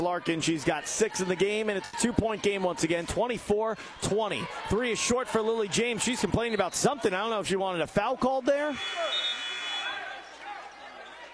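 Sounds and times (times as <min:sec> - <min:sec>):
speech: 0:00.0 - 0:09.2
referee's whistle at basketball game: 0:06.4 - 0:06.9, 0:08.7 - 0:11.3.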